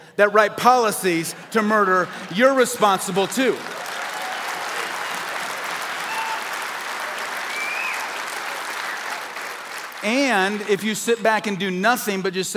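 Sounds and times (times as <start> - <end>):
speech: 0.2 - 3.8, 10.0 - 12.5
audience clapping: 1.6 - 11.5.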